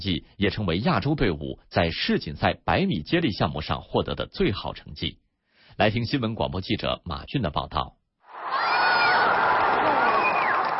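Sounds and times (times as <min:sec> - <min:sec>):
speech: 0:00.0 - 0:05.2, 0:05.8 - 0:08.0
stadium crowd roaring at the athletics World Championships: 0:08.3 - 0:10.7.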